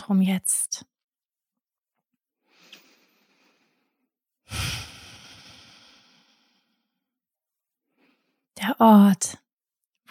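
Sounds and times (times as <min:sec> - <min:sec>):
speech: 0:00.0 - 0:00.9, 0:08.6 - 0:09.4
slow deep breath during a guided yoga meditation: 0:02.4 - 0:07.0, 0:07.8 - 0:08.5.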